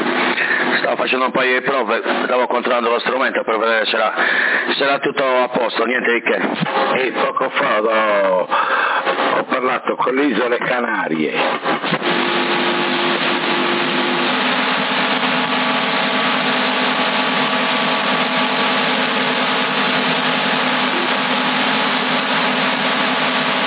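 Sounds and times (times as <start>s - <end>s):
CB radio carrier static hiss on 27.075 MHz: 0.0s - 23.6s
speech: 1.1s - 12.0s
low hum tone: 20.3s - 21.8s.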